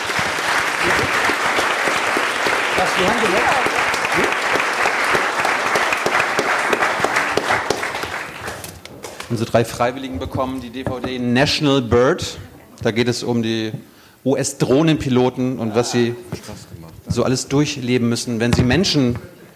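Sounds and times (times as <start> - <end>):
audience applause: 0.0 - 8.8
speech: 2.8 - 4.3, 9.3 - 19.3.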